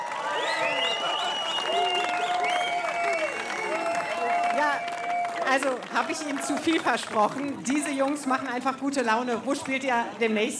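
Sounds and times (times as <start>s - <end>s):
cheering voices and whoops: 0.0s - 5.8s
crowd applauding: 0.0s - 10.1s
speech: 5.5s - 10.5s.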